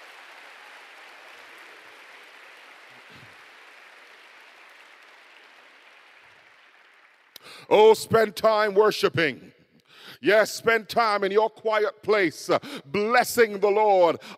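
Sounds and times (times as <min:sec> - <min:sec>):
audience clapping: 0:00.0 - 0:08.4
speech: 0:07.6 - 0:09.5, 0:10.2 - 0:14.3.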